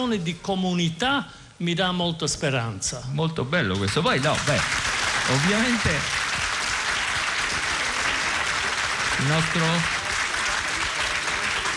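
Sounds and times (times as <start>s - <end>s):
speech: 0.0s - 6.2s, 9.2s - 10.0s
audience applause: 3.8s - 11.7s.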